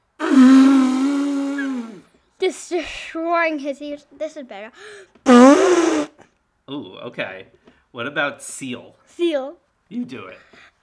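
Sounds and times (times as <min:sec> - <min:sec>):
person imitating an elephant trumpeting: 0:00.0 - 0:02.0, 0:05.3 - 0:06.2
speech: 0:02.5 - 0:06.1, 0:06.7 - 0:10.7.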